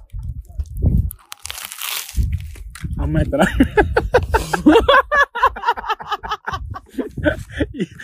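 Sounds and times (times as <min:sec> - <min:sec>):
biting into toasted sandwich bread: 0:00.6 - 0:02.7
speech: 0:03.1 - 0:04.8
laughter: 0:03.4 - 0:08.0.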